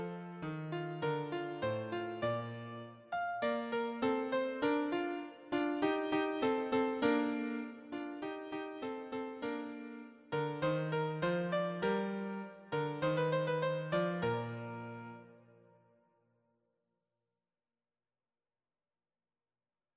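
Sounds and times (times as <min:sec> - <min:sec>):
allegro classical piece in B major: 0:00.0 - 0:15.8.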